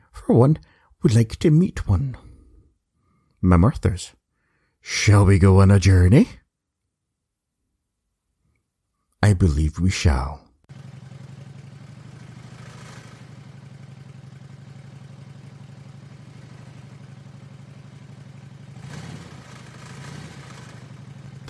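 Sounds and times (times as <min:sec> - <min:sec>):
speech: 0:00.2 - 0:02.3, 0:03.4 - 0:04.2, 0:04.8 - 0:06.4, 0:09.2 - 0:10.9
motorcycle engine idling: 0:10.7 - 0:21.4.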